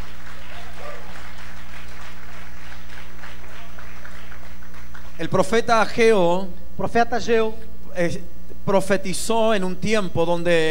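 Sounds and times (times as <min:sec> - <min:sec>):
audience applauding: 0:00.0 - 0:05.3
low constant hum: 0:00.0 - 0:10.6
speech: 0:05.2 - 0:10.6.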